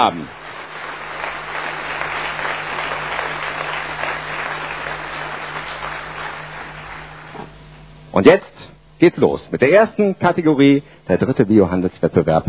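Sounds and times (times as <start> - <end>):
speech: 0.0 - 0.4, 8.2 - 12.4
audience applause: 0.0 - 7.6.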